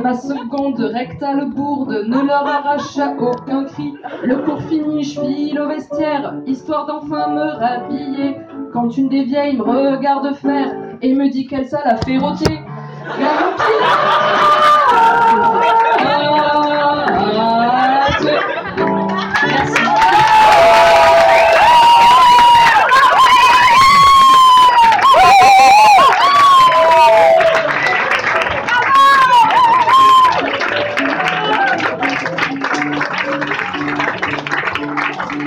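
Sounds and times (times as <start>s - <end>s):
speech: 0.0s - 16.4s
laughter: 2.0s - 3.2s, 3.9s - 4.9s, 12.9s - 16.7s, 17.3s - 21.4s
audience applause: 18.4s - 35.4s.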